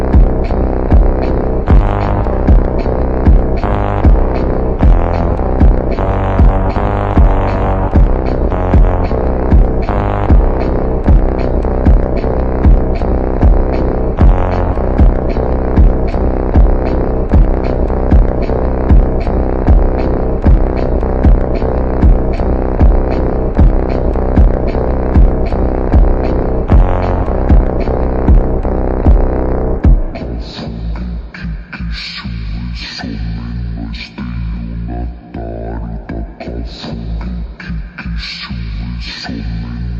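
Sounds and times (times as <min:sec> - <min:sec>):
slowed beat: 0:00.0 - 0:31.6.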